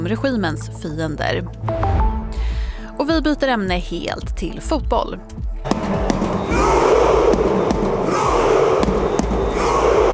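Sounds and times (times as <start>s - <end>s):
speech: 0.0s - 2.0s, 3.0s - 5.9s
sharp bangs or claps: 5.6s - 10.1s
Norwegian football fans roaring after World Cup win over Senegal: 5.8s - 10.1s.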